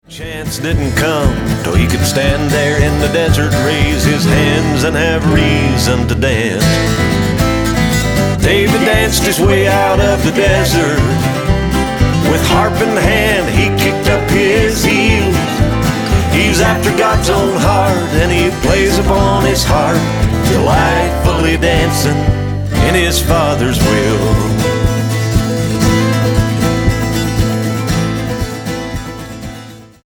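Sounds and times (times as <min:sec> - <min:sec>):
desert dance music: 0:00.8 - 0:29.6.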